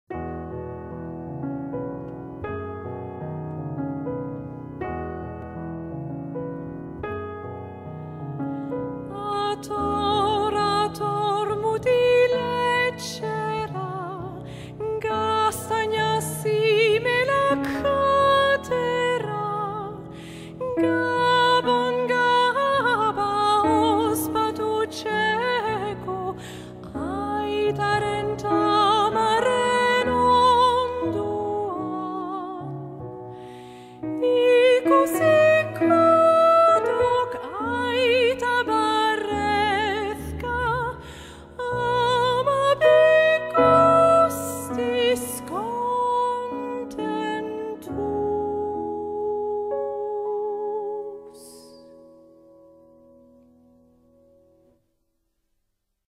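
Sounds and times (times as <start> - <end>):
soprano singing a Basque Christmas carol: 9.1 - 32.9, 34.1 - 41.0, 41.6 - 51.9.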